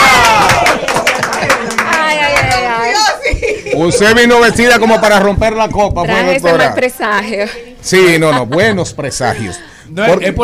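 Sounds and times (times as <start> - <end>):
applause: 0.0 - 2.7
laughter: 0.3 - 2.0, 2.6 - 5.4, 8.0 - 9.7
speech: 3.8 - 10.4.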